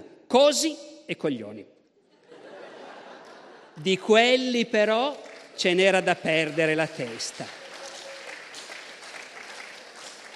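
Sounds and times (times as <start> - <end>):
speech: 0.3 - 1.8, 3.8 - 7.6
laughter: 2.0 - 4.1
audience applause: 5.2 - 10.3.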